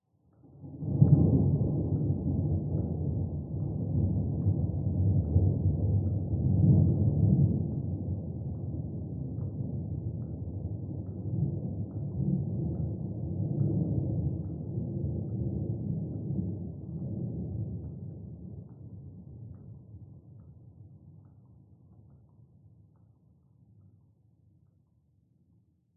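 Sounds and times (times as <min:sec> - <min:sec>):
distant low thunder rumble: 0:00.8 - 0:18.8.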